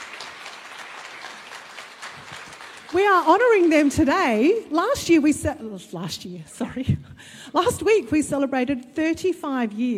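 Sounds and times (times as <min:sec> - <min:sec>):
audience round of applause: 0:00.0 - 0:04.6
speech: 0:02.9 - 0:09.9.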